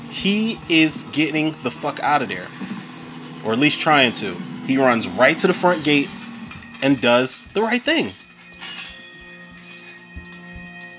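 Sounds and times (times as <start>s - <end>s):
speech: 0.1s - 2.7s, 3.4s - 6.2s, 6.8s - 8.2s
keys jingling: 5.7s - 10.9s.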